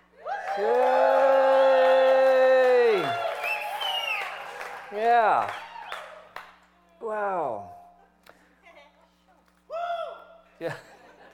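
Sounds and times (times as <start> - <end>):
church congregation cheering: 0.2 - 6.4
speech: 0.6 - 0.9, 5.2 - 5.6, 7.1 - 7.7, 10.6 - 10.9.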